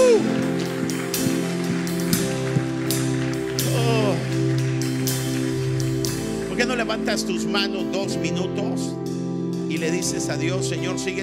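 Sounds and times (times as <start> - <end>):
audience applauding loudly: 0.0 - 7.0
speech: 6.9 - 11.2.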